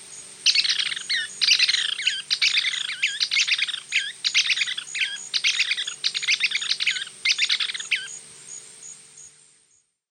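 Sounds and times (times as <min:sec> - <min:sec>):
Lesser Wagtail-Tyrant in the Eastern Lowlands of South America: 0:00.5 - 0:08.2.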